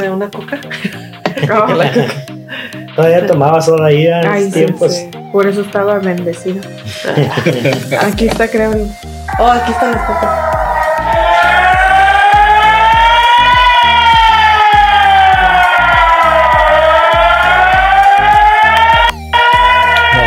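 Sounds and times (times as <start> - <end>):
speech: 0.0 - 2.3, 3.0 - 10.4
laughter: 0.5 - 2.8, 6.8 - 8.2
civil defense drill alarm siren wailing: 4.2 - 6.0, 9.2 - 20.2.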